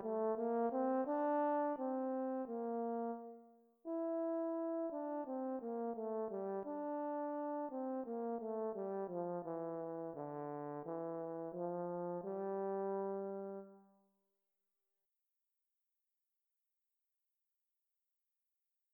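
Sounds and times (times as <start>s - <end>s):
slow horn: 0.0s - 13.8s.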